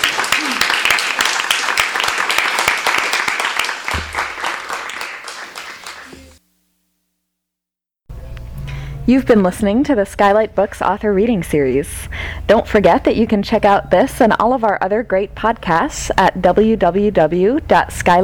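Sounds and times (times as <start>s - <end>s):
audience applause: 0.0s - 6.4s
speech: 9.1s - 18.2s.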